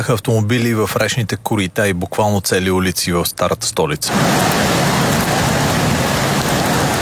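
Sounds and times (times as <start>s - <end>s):
speech: 0.0s - 5.1s
torrential heavy rain downpour: 4.1s - 7.0s.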